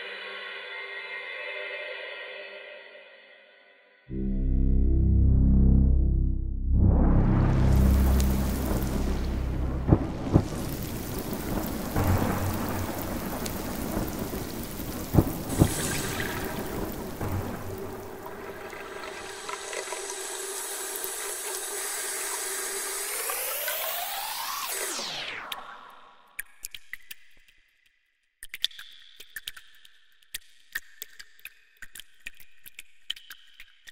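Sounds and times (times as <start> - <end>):
short noise sound effect: 4.1 - 19.8.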